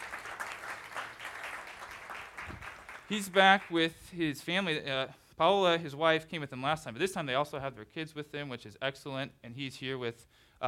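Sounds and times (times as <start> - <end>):
audience clapping: 0.0 - 3.9
speech: 3.1 - 10.6.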